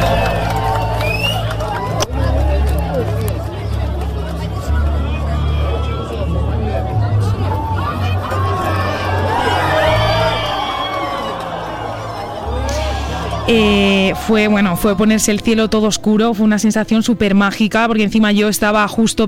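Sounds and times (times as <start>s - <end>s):
crowd on a beach screaming during a total solar eclipse: 0.0s - 3.1s, 4.7s - 16.3s
crowd on a beach applauding during a total solar eclipse: 0.0s - 16.2s
speech: 13.5s - 19.2s.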